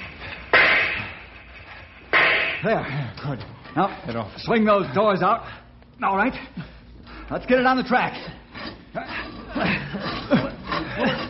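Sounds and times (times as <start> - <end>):
gunshot fired to shoot the lock off a handcar shed: 0.6 - 1.2
speech: 2.6 - 6.7, 7.3 - 8.4, 9.6 - 10.4
laughter: 9.0 - 11.2.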